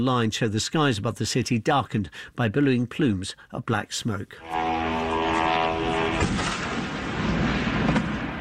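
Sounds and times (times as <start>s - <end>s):
speech: 0.0s - 5.0s
Ukrainian drone engine over southeast Moscow: 4.4s - 7.2s
sharp bangs of drone strike: 4.5s - 8.3s.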